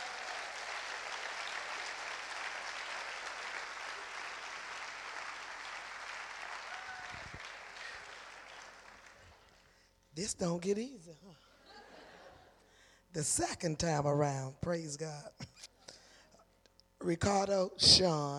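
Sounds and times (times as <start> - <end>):
audience applause: 0.0 - 9.5
speech: 10.2 - 11.5, 13.2 - 15.4, 17.0 - 18.3
laughter: 11.6 - 12.6.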